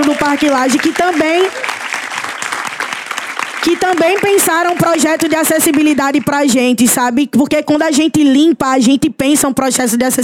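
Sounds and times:
audience applause: 0.0 - 6.2
speech: 0.3 - 1.7, 3.6 - 10.2.

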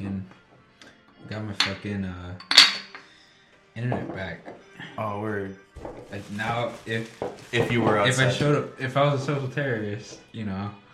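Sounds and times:
glasses clinking in a toast: 1.2 - 3.2, 5.8 - 8.6
speech: 1.3 - 2.6, 3.8 - 10.9.

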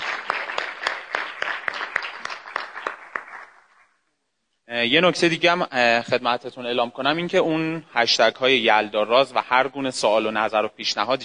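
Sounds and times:
audience applauding to welcome speakers onto a stage at an event: 0.0 - 4.0
speech: 4.7 - 11.2.

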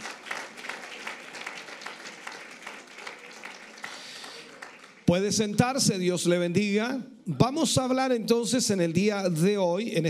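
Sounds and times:
audience applause: 0.0 - 5.6
speech: 5.1 - 10.0.

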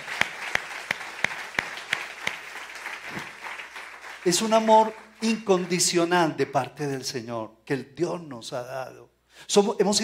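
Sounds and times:
audience applauding: 0.0 - 6.3
speech: 4.2 - 10.0.

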